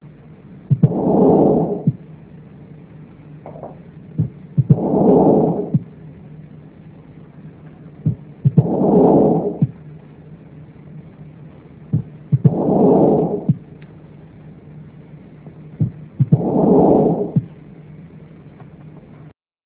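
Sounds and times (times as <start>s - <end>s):
heartbeat: 0.7s - 2.1s, 3.5s - 6.0s, 7.7s - 9.8s, 11.9s - 13.7s, 15.5s - 17.6s.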